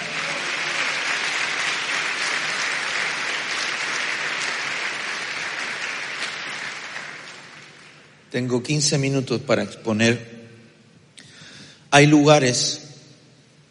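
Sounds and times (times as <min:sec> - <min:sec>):
crowd clapping: 0:00.0 - 0:08.4
speech: 0:08.3 - 0:10.4, 0:12.0 - 0:12.9.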